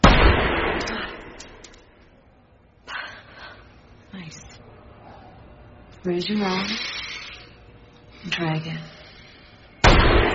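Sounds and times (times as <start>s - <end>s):
gunshot from a fired weapon: 0.0s - 1.6s, 9.8s - 10.3s
speech: 6.0s - 7.0s, 8.2s - 9.0s.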